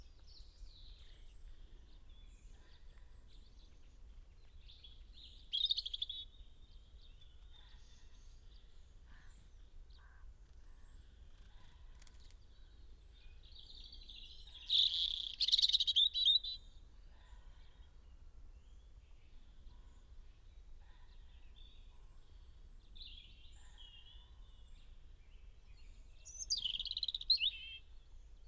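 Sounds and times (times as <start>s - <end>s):
European robin singing: 13.4s - 16.6s, 26.2s - 27.9s.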